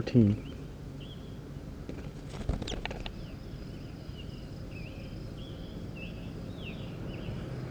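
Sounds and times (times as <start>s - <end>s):
bird on the ground chirping: 0.1s - 7.6s
clicks and rustles: 1.8s - 3.3s.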